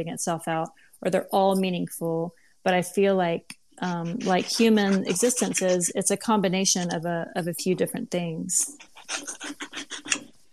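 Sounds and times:
speech: 0.0s - 10.0s
knife cutting through a grapefruit: 3.9s - 5.9s, 8.7s - 10.3s.

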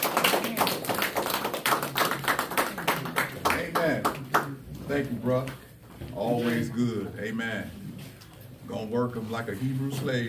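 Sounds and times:
audience clapping: 0.0s - 4.6s
speech: 5.0s - 5.6s, 6.2s - 7.8s, 8.7s - 10.2s.

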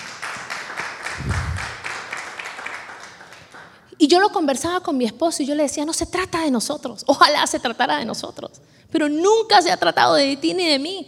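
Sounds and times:
audience clapping: 0.0s - 3.8s
speech: 4.0s - 11.0s.

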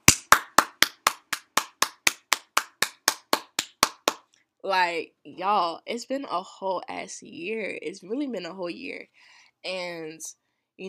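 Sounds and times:
hand clapping: 0.0s - 4.3s
speech: 4.6s - 10.8s.

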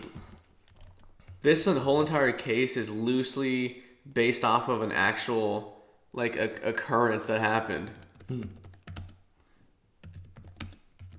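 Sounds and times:
forceful typing on a computer keyboard: 0.3s - 1.4s, 8.0s - 9.2s, 10.0s - 11.1s
speech: 1.4s - 8.6s.

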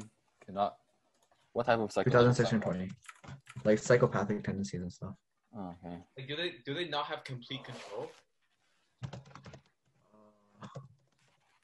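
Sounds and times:
speech: 0.5s - 0.8s, 1.6s - 8.3s, 9.0s - 9.5s
faint typing on a computer keyboard during a Google search: 2.9s - 3.7s, 9.0s - 9.8s.

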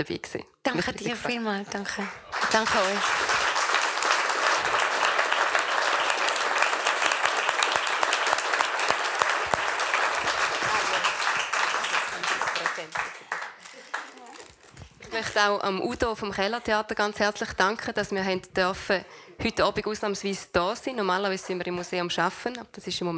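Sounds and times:
speech: 0.0s - 3.4s, 15.2s - 23.1s
audience applause: 1.9s - 14.5s.

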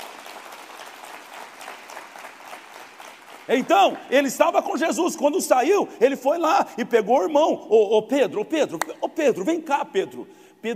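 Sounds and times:
applause: 0.0s - 4.6s
speech: 3.5s - 10.7s.

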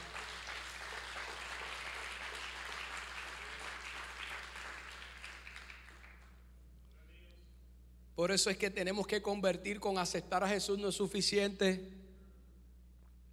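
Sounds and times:
audience applause: 0.0s - 6.3s
speech: 8.2s - 12.0s.

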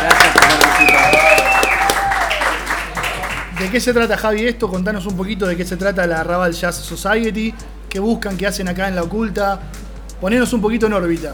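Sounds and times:
audience applause: 0.0s - 3.8s
speech: 3.7s - 11.3s.

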